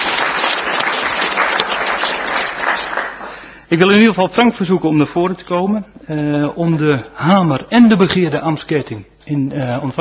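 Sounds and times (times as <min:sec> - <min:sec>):
audience applause: 0:00.0 - 0:03.6
speech: 0:03.7 - 0:09.9.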